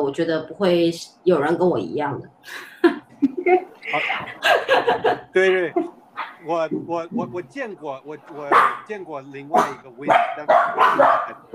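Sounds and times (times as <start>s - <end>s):
speech: 0.0s - 11.5s
laughter: 2.5s - 5.9s, 6.5s - 11.5s
dog barking: 8.4s - 11.5s.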